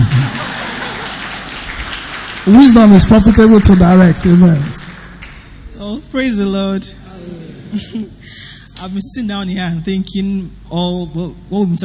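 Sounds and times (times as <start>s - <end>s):
laughter: 0.0s - 1.6s, 7.6s - 8.2s
audience clapping: 0.0s - 5.6s
speech: 2.5s - 4.8s, 5.8s - 7.0s, 7.7s - 8.2s, 8.8s - 11.8s.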